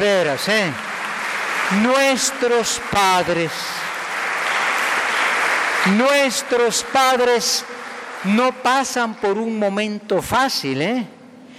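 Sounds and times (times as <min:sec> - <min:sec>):
speech: 0:00.0 - 0:00.9, 0:01.7 - 0:03.8, 0:05.8 - 0:11.2
audience applause: 0:00.0 - 0:09.8.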